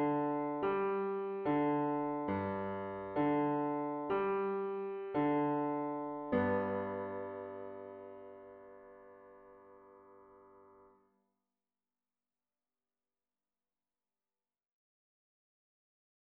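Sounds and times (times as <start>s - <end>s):
piano: 0.0s - 11.1s.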